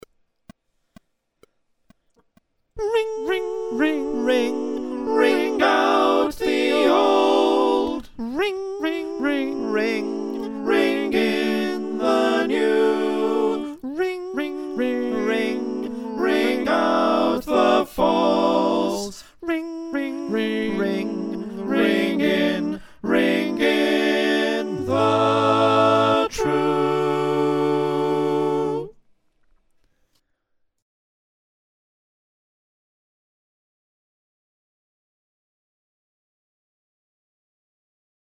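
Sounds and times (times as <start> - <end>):
SATB choir singing: 2.8 - 29.0.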